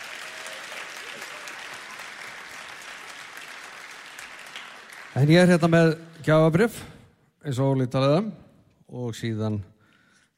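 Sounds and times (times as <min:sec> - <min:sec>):
applause at the Músíktilraunir band competition award ceremony: 0:00.0 - 0:06.5
speech: 0:05.2 - 0:09.7.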